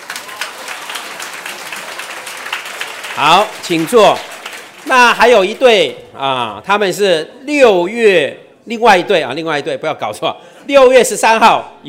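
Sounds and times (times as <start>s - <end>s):
audience applause: 0.0s - 5.8s
speech: 3.2s - 11.8s.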